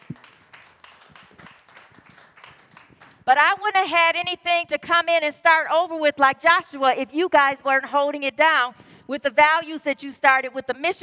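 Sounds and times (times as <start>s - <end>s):
audience clapping: 0.0s - 3.3s
speech: 3.3s - 11.0s.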